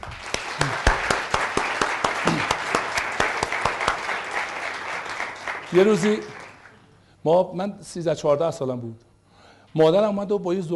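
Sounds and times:
audience clapping in rhythmic unison at a live talk: 0:00.0 - 0:07.0
speech: 0:05.7 - 0:06.4, 0:07.2 - 0:09.1, 0:09.7 - 0:10.7.

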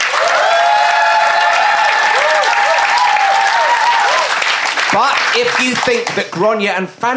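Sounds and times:
whoops and cheers: 0:00.0 - 0:04.4
audience applause: 0:00.0 - 0:06.3
speech: 0:05.0 - 0:07.1.

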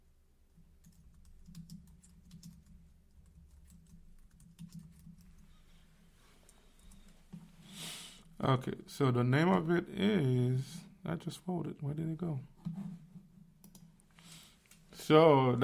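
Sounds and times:
typing on a computer keyboard: 0:00.8 - 0:05.4
speech: 0:08.4 - 0:12.8, 0:15.1 - 0:15.6.

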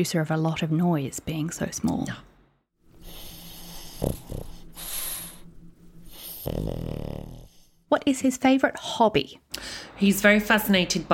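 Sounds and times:
speech: 0:00.0 - 0:02.3, 0:04.0 - 0:04.3, 0:06.4 - 0:11.1
small dog snoring: 0:03.0 - 0:07.8.

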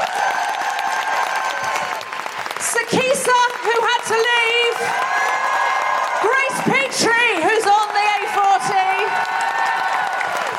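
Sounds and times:
audience applause: 0:00.0 - 0:10.5.

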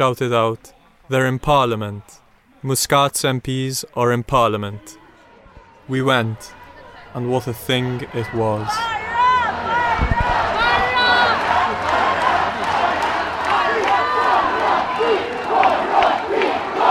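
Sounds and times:
speech: 0:00.0 - 0:05.0, 0:05.9 - 0:09.0
angry crowd shouting at departing government MPs outside Parliament: 0:04.8 - 0:16.9.

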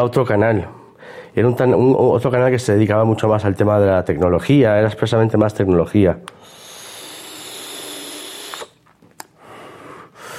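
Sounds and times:
speech: 0:00.0 - 0:06.6
person vaping, exhaling vapour: 0:06.4 - 0:10.3.

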